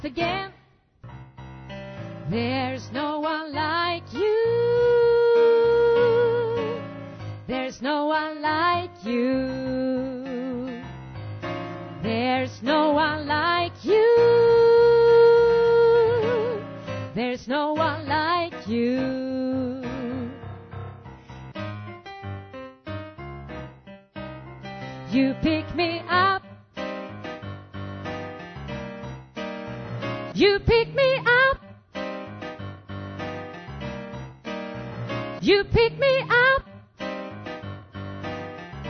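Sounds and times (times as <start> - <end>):
soprano voice part singing: 0.0 - 0.6, 2.3 - 10.8, 12.0 - 20.6, 25.1 - 26.6, 30.3 - 31.7, 35.4 - 36.8.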